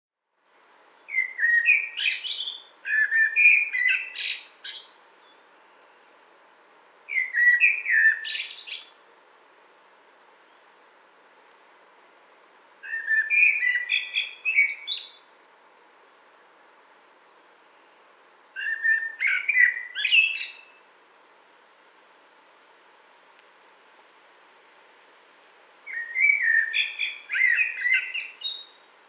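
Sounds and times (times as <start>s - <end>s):
common blackbird song: 0.9s - 9.0s, 12.8s - 15.3s, 17.1s - 21.0s, 24.2s - 24.5s, 25.2s - 29.0s.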